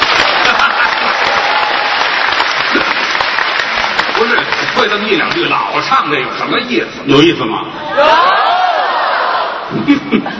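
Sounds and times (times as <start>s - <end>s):
laughter: 0.0s - 1.6s, 7.8s - 10.3s
audience applause: 0.0s - 5.6s
speech: 4.6s - 8.3s, 9.7s - 10.3s.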